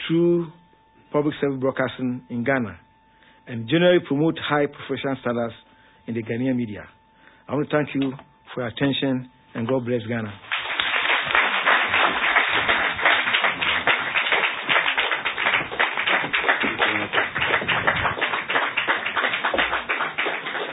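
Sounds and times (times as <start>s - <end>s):
speech: 0.1s - 2.8s, 3.5s - 10.5s
applause: 10.4s - 20.7s.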